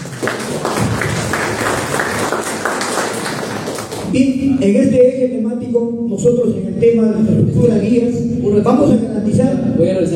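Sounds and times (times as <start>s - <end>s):
audience applause: 0.0s - 4.1s
speech: 0.2s - 0.7s, 4.1s - 10.1s.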